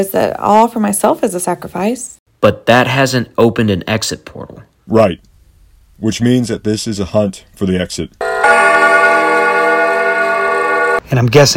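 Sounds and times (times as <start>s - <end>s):
speech: 0.0s - 5.3s, 6.0s - 8.3s, 11.1s - 11.5s
grandfather clock chiming: 8.2s - 11.0s.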